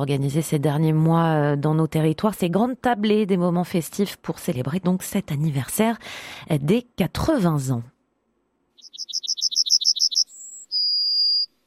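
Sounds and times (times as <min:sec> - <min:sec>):
speech: 0:00.0 - 0:07.9
yellowhammer singing: 0:08.8 - 0:11.5.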